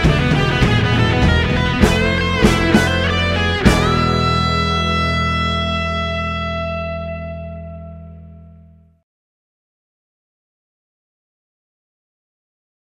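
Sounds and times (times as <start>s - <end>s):
drums playing eighth notes: 0.0s - 5.9s.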